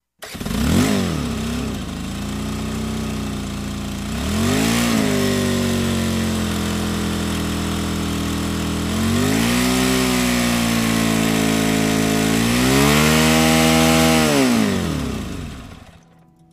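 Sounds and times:
chainsaw starting, idling and revving big for a slice: 0.2s - 16.1s.

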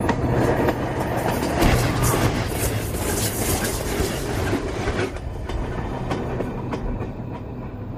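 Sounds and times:
diesel locomotive: 0.0s - 7.9s.

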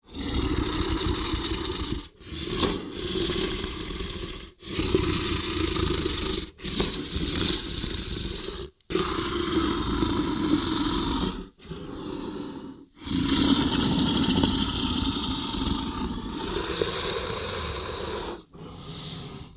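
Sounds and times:
stalking monster roaring: 0.0s - 12.4s, 13.0s - 18.8s.

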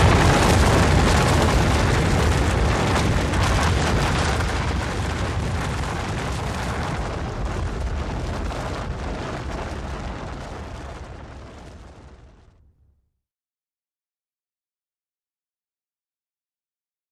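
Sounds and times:
rocks and debris rolling: 0.0s - 12.4s
avalanche rumble: 0.0s - 12.8s.

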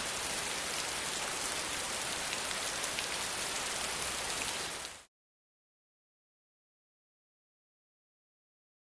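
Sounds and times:
heavy fast rain splatting: 0.0s - 5.1s.

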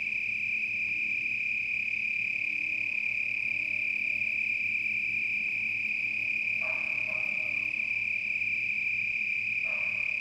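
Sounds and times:
cricket giving a steady high-pitched trill: 0.0s - 10.2s.

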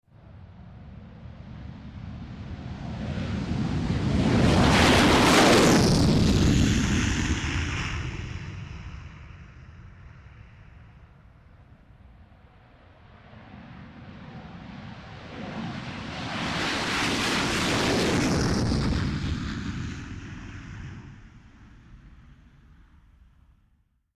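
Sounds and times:
two F-18 Hornet jets taking off: 2.6s - 11.0s, 13.1s - 21.2s.

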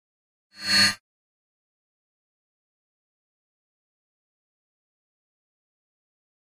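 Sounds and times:
mouse over sound: 0.6s - 1.0s.

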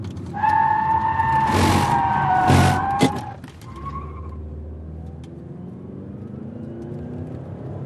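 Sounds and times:
sedan skidding: 0.2s - 4.6s.

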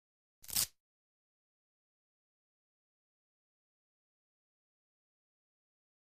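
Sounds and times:
quick biking velcro ripping: 0.4s - 0.8s.

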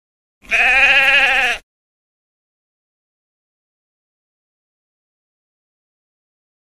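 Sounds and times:
sheep bleating: 0.4s - 1.7s.

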